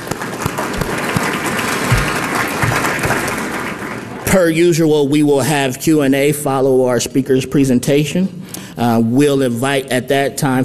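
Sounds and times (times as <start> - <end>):
audience applause: 0.0 - 4.2
speech: 4.4 - 10.6.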